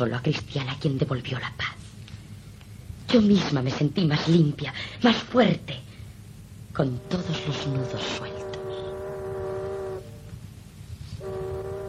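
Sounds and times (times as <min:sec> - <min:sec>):
speech: 0:00.0 - 0:01.8, 0:03.1 - 0:05.8, 0:06.8 - 0:08.3
ship's horn blasts: 0:06.8 - 0:11.8.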